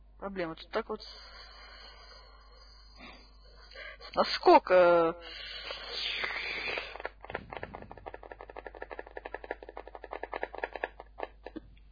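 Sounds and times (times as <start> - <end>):
speech: 0.2 - 1.5, 4.0 - 6.3
fingers tapping on a laptop: 7.0 - 11.6.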